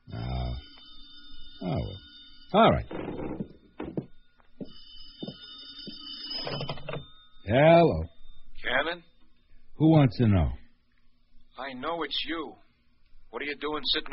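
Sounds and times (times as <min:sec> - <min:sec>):
telephone ringing: 0:00.0 - 0:07.7
speech: 0:01.6 - 0:03.2, 0:07.5 - 0:08.1, 0:09.8 - 0:10.6, 0:11.6 - 0:12.6, 0:13.3 - 0:14.1.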